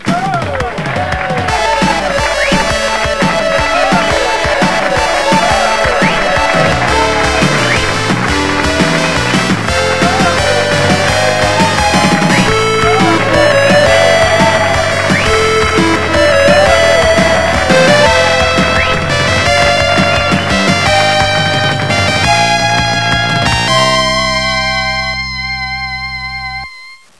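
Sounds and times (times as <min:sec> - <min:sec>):
victory music: 0:00.6 - 0:26.6.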